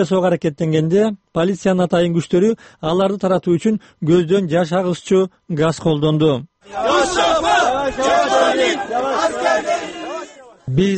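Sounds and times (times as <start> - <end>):
speech: 0.0 - 9.9, 10.7 - 10.9
demonstrators chanting outside a courthouse in Silivri Turkey: 6.6 - 10.7.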